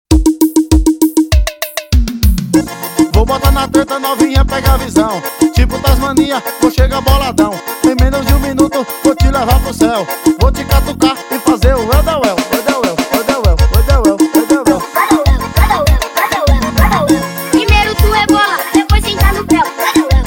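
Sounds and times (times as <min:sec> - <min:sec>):
piseiro music: 0:00.1 - 0:20.2.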